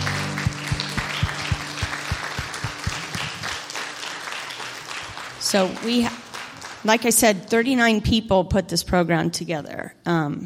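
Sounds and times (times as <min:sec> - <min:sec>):
audience applause: 0:00.0 - 0:06.9
speech: 0:05.5 - 0:06.2, 0:06.8 - 0:10.4.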